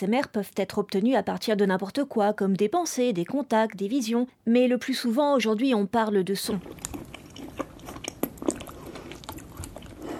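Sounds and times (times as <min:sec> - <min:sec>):
speech: 0:00.0 - 0:07.1
ASMR wet chewing of large salmon sashimi: 0:06.5 - 0:10.1
mouth smacks and clicks: 0:06.6 - 0:10.1.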